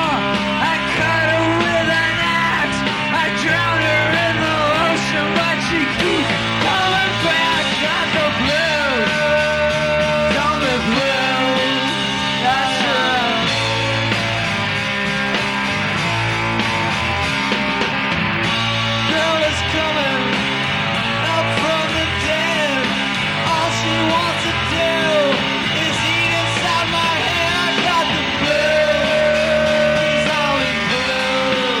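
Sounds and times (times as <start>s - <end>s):
zombie blues music: 0.0s - 31.7s.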